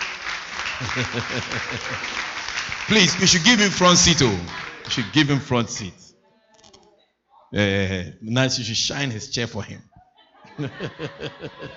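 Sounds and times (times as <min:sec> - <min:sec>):
audience clapping for a political correspondent: 0:00.0 - 0:05.6
laughter: 0:00.6 - 0:05.3, 0:10.1 - 0:11.7
speech: 0:00.8 - 0:02.3, 0:02.9 - 0:06.1, 0:07.5 - 0:09.9, 0:10.6 - 0:11.7.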